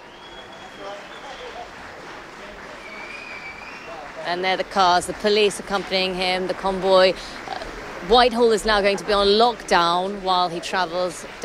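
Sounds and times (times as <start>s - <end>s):
high whistles: 0.0s - 1.7s, 2.7s - 4.2s
crowd cheering as convoy departs: 0.0s - 11.4s
speech: 4.2s - 11.4s.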